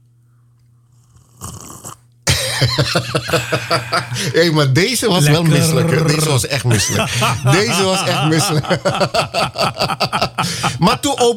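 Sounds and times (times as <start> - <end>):
person slurping a drink: 1.1 - 2.1
laughter: 2.3 - 11.3
speech: 2.6 - 11.3.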